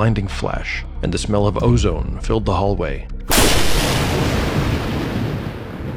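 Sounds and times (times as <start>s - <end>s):
speech: 0.0s - 3.6s
lightning bolt crack: 3.3s - 5.9s.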